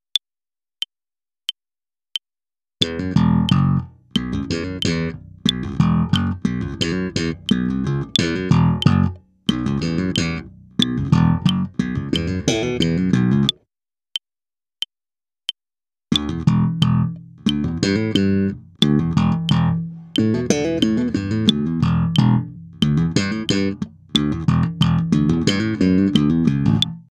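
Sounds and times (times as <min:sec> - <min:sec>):
slap electric bass: 0:02.8 - 0:13.5, 0:16.1 - 0:27.1.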